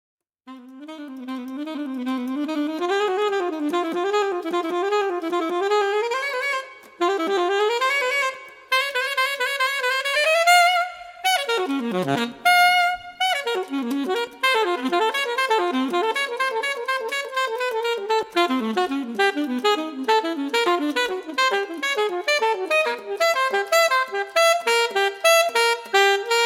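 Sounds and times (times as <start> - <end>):
saxophone: 0.5 - 26.4.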